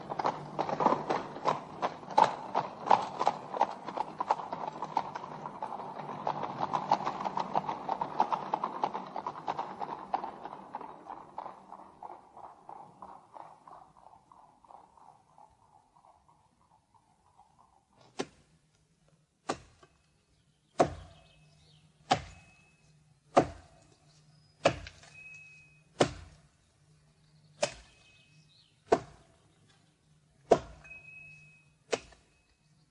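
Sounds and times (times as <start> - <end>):
hooves clopping: 0.0 - 32.8
horse-drawn carriages driving away: 0.0 - 32.8.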